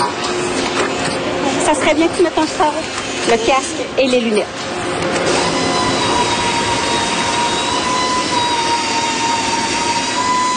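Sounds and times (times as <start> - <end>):
loud factory machinery roaring: 0.0 - 10.5
sustained high-pitched whines: 0.0 - 10.5
speech: 1.9 - 5.0
tonal hums: 4.9 - 10.5.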